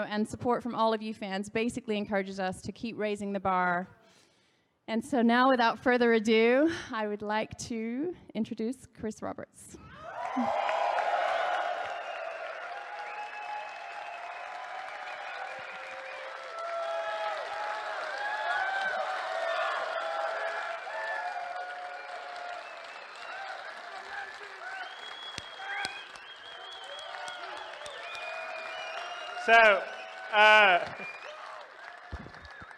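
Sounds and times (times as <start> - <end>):
speech: 0.0 - 4.0, 4.9 - 10.8, 29.5 - 31.1
audience applause: 9.9 - 32.7.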